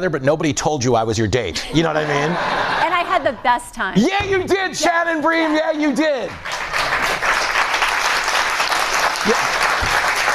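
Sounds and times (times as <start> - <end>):
speech: 0.0 - 7.3
laughter: 1.5 - 3.4
audience applause: 5.1 - 10.3.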